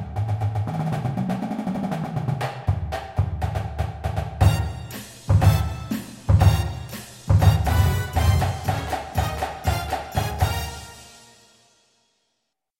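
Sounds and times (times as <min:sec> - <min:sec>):
music: 0:00.0 - 0:12.6
bass: 0:04.4 - 0:10.8.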